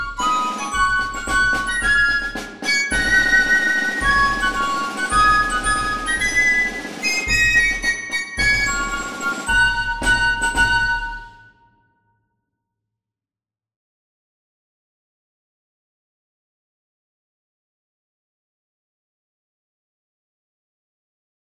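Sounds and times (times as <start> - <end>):
military march by small ensemble: 0.0 - 11.6.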